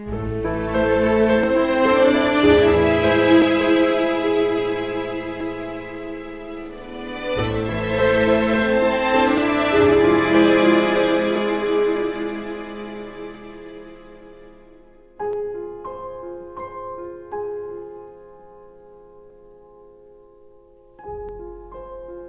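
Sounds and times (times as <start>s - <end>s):
suspense theme music: 0.0s - 15.2s.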